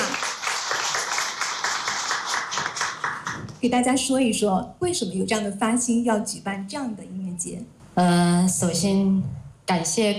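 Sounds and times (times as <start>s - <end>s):
audience applause: 0.0s - 3.5s
speech: 3.6s - 10.1s.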